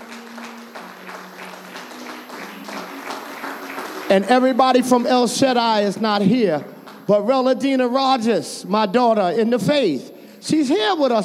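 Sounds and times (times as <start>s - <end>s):
audience applause, hand clapping: 0.0s - 7.1s
speech: 4.1s - 11.2s.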